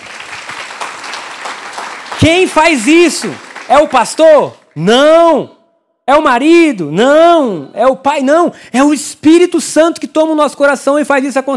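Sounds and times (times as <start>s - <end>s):
audience applause: 0.0s - 4.7s
speech: 2.2s - 11.5s.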